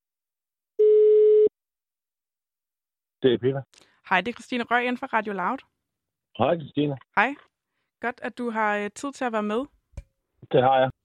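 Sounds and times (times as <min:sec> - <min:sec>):
telephone dial tone while a call is placed: 0:00.8 - 0:01.5
speech: 0:03.2 - 0:05.7, 0:06.4 - 0:09.8, 0:10.4 - 0:11.0.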